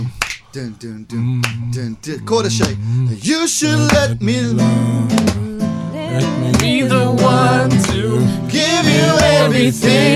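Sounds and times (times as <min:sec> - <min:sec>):
person singing or humming: 0:00.0 - 0:10.1
hand clap: 0:00.2 - 0:00.5, 0:01.4 - 0:01.7, 0:02.6 - 0:02.8, 0:03.8 - 0:04.2, 0:05.1 - 0:05.5, 0:06.5 - 0:06.9, 0:07.7 - 0:08.1, 0:09.2 - 0:09.5
speech: 0:00.5 - 0:05.5, 0:06.1 - 0:10.1.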